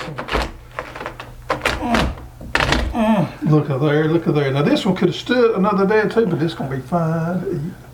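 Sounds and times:
sangria watermelon being cut and popping open: 0.0s - 3.7s
speech: 3.5s - 7.9s.

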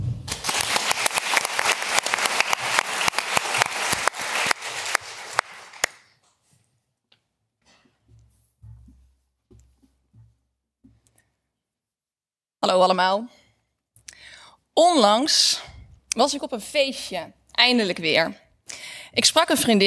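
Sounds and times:
warm audience applause: 0.2s - 6.1s
speech: 12.6s - 13.4s, 14.8s - 18.4s, 19.1s - 19.8s.

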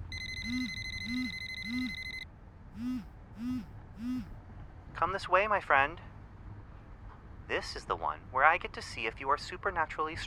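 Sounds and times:
phone ringtone of an incoming call: 0.0s - 2.2s
steady high beeping tone: 0.0s - 2.2s, 2.8s - 4.3s
speech: 0.5s - 2.0s, 5.0s - 6.1s, 7.5s - 10.2s.

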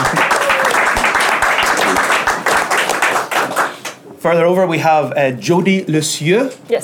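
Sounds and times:
audience applause: 0.0s - 3.9s
speech: 4.2s - 6.8s.

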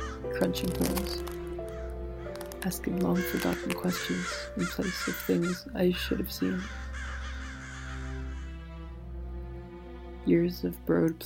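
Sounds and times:
crows cawing: 0.0s - 9.0s
speech: 0.2s - 1.4s, 2.6s - 6.8s, 10.3s - 11.2s.

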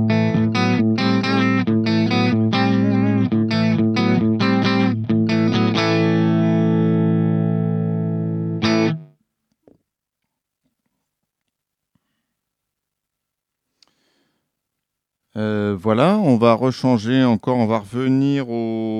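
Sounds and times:
clean-toned electric guitar riff with chord stabs: 0.0s - 9.1s
speech: 15.4s - 18.9s.

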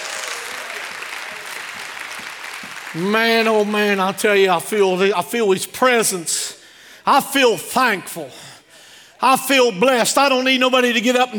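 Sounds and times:
audience applause and hand claps: 0.0s - 4.0s
speech: 2.9s - 6.5s, 7.1s - 8.4s, 9.2s - 11.3s.

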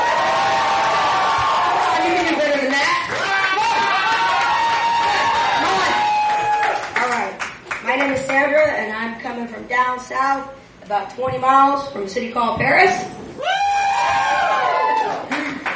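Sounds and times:
crowd cheering and whooping: 0.0s - 2.3s, 3.1s - 6.9s, 13.4s - 15.6s
scattered clapping: 1.3s - 8.4s, 15.3s - 15.7s
speech: 8.4s - 13.5s.

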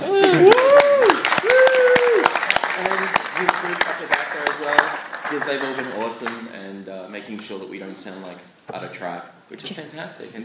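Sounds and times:
voices whooping and calling out: 0.0s - 2.3s
audience clapping for panelists: 0.0s - 6.5s
speech: 0.3s - 0.7s, 7.9s - 10.4s.

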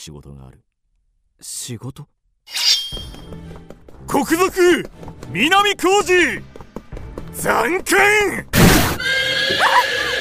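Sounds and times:
speech: 0.0s - 0.7s, 1.4s - 6.6s, 7.3s - 10.0s
horse neighing by a carriage: 8.8s - 10.1s.

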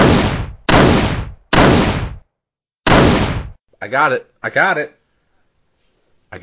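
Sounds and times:
shotgun blasts fired at a spider by a house: 0.0s - 2.2s, 2.8s - 3.6s.

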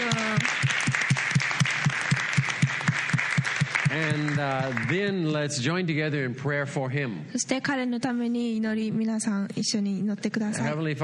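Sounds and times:
audience applause: 0.0s - 5.5s
speech: 4.0s - 11.0s.

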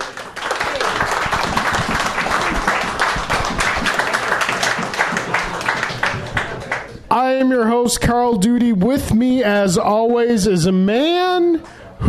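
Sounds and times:
live audience applause at Iron Buffalo: 0.0s - 7.0s
speech: 7.2s - 12.0s.

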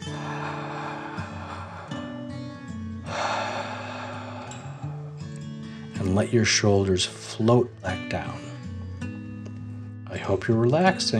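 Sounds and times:
slow breathing in and out during a children's bedtime relaxation exercise: 0.0s - 6.0s
speech: 6.0s - 8.5s, 10.3s - 11.1s.

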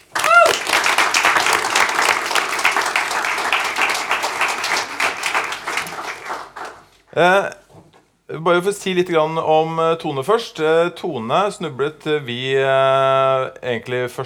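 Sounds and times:
audience applause: 0.0s - 7.0s
cheer or whistle: 0.1s - 0.8s
speech: 7.2s - 7.6s, 8.3s - 14.2s.

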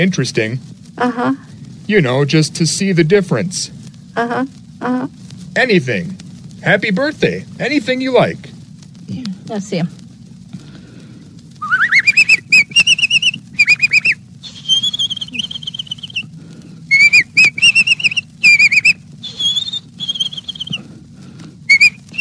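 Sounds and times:
speech: 0.0s - 8.5s, 9.1s - 10.0s
low steady hum: 0.0s - 22.1s
person whistling a bird-like melody in trilling phrases: 11.6s - 16.3s, 16.9s - 20.8s, 21.7s - 22.1s.

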